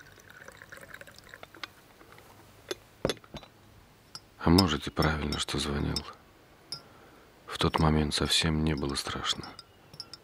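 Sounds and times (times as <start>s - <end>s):
tea poured from teapot into mug: 0.0s - 1.8s
speech: 4.4s - 6.2s, 7.6s - 9.6s.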